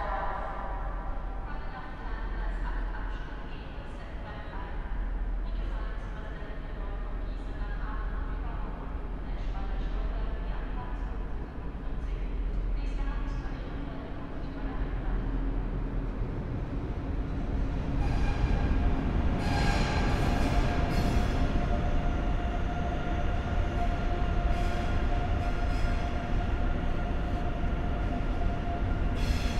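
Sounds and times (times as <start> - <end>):
train station hall ambience: 0.0 - 29.5.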